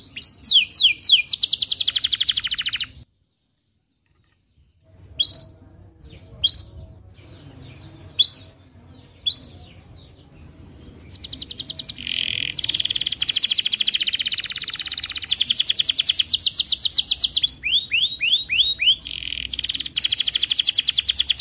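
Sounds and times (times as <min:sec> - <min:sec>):
Atlantic canary trilling: 0:00.0 - 0:03.0, 0:05.2 - 0:05.6, 0:11.1 - 0:21.4.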